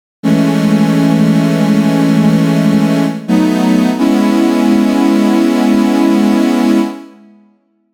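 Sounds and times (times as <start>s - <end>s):
synth pad: 0.2s - 7.4s.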